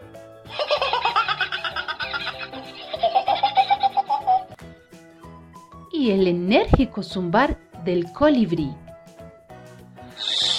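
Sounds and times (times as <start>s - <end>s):
imitated kookaburra laugh: 0.5s - 4.6s
speech: 6.0s - 8.8s.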